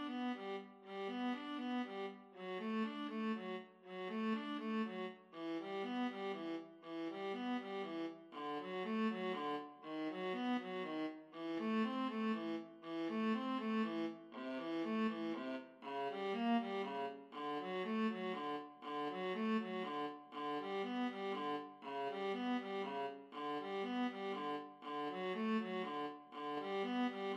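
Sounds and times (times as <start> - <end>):
violin and viola duet: 0.0 - 15.4, 16.1 - 27.3.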